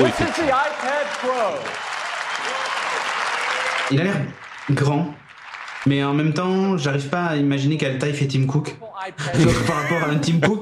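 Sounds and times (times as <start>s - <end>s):
speech: 0.0s - 3.1s, 3.9s - 5.2s, 5.8s - 10.6s
keynote audience applause: 0.0s - 7.2s
laughter: 9.2s - 10.6s.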